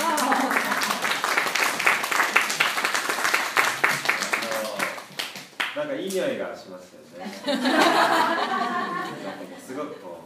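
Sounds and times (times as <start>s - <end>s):
audience applauding at a Japanese gathering: 0.0s - 5.8s
speech: 6.1s - 8.7s
laughter: 7.2s - 10.2s.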